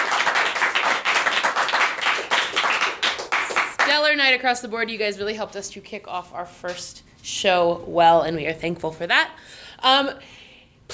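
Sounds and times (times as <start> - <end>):
audience applauding: 0.0 - 4.0
speech: 4.0 - 10.4.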